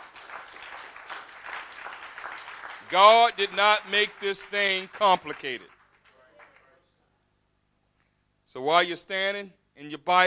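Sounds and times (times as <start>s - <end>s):
audience clapping hands: 0.0s - 6.7s
speech: 2.9s - 5.8s, 8.5s - 10.2s.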